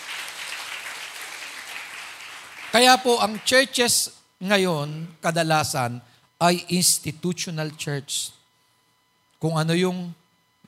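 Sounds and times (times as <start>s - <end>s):
church congregation clapping for the Lord: 0.0s - 4.0s
speech: 2.8s - 8.4s, 9.4s - 10.2s.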